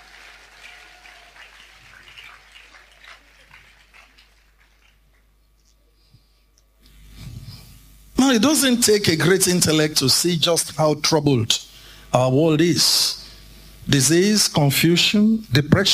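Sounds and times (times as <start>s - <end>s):
audience applause: 0.0s - 5.4s
speech: 8.3s - 13.2s, 13.9s - 15.9s.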